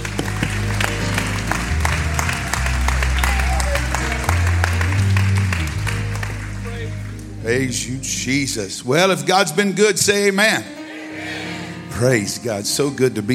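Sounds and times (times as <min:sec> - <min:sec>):
audience clapping hands: 0:00.0 - 0:07.8
speech: 0:07.5 - 0:10.8, 0:12.0 - 0:13.3.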